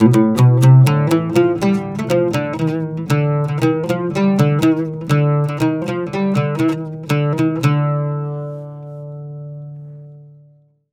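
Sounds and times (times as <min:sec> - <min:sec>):
Mediterranean traditional oud playing: 0:00.0 - 0:10.7.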